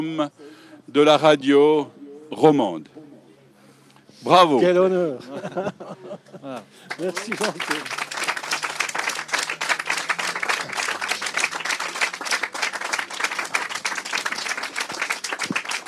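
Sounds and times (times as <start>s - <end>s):
speech: 0.0s - 3.0s, 4.2s - 8.1s
laughter: 5.2s - 7.8s
audience applause: 6.9s - 15.8s.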